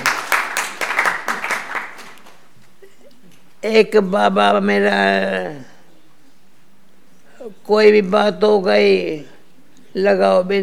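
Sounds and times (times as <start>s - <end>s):
audience clapping in rhythm: 0.0s - 3.6s
speech: 3.6s - 5.7s, 7.7s - 9.3s, 10.0s - 10.6s.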